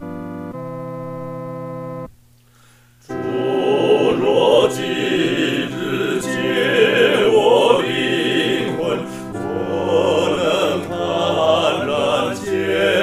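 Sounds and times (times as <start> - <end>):
four-part choir singing: 3.1 - 13.0.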